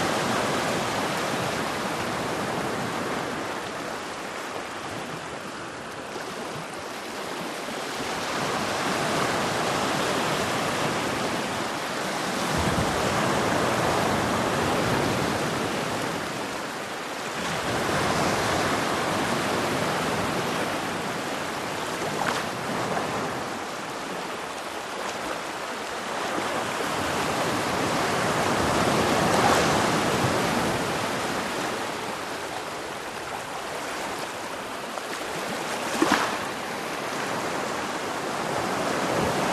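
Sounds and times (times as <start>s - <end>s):
gentle rolling waves on a black sand beach: 0.0s - 39.5s.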